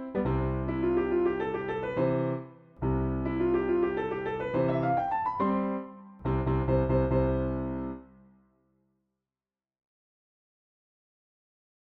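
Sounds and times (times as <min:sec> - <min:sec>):
piano: 0:00.0 - 0:08.7.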